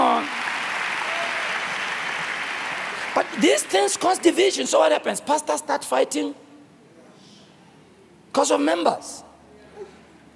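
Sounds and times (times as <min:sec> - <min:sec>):
audience clapping: 0:00.0 - 0:04.4
speech: 0:03.2 - 0:06.4, 0:08.4 - 0:09.3.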